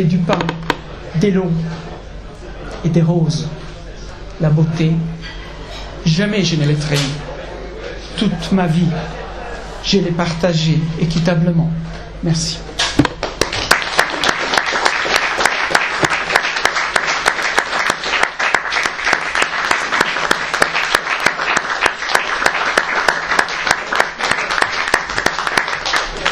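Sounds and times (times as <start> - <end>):
speech: 0.0 - 0.6, 1.2 - 1.9, 2.7 - 3.8, 4.4 - 5.4, 6.0 - 7.3, 8.2 - 9.2, 9.8 - 13.1
audience applause for poet: 13.2 - 26.3.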